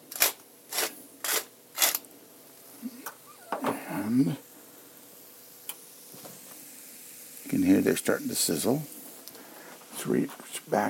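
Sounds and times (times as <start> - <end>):
pepper mill grinding black pepper: 0.0 - 2.1
speech: 4.0 - 4.5, 7.6 - 9.0, 10.0 - 10.8.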